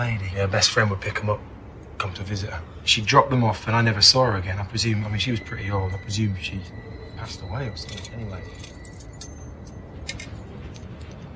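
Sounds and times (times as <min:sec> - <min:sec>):
speech: 0:00.0 - 0:08.8
steady low background: 0:00.0 - 0:11.3
bunch of keys jangling: 0:05.9 - 0:11.3.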